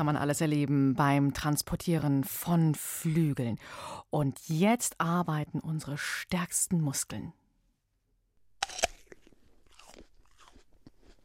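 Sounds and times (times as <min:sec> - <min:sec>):
speech: 0:00.0 - 0:07.4
biting into an apple: 0:08.5 - 0:11.2
soft chewing: 0:08.6 - 0:11.2.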